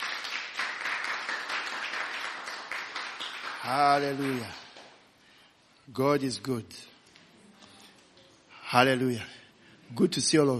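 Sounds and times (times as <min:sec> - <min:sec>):
audience applause: 0:00.0 - 0:04.8
speech: 0:03.6 - 0:04.6, 0:05.9 - 0:06.9, 0:08.7 - 0:10.5.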